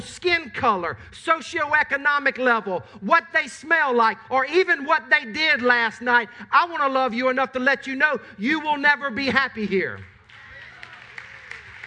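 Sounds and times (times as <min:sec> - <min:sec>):
speech: 0:00.0 - 0:10.1
audience clapping slowly in unison: 0:09.9 - 0:11.8.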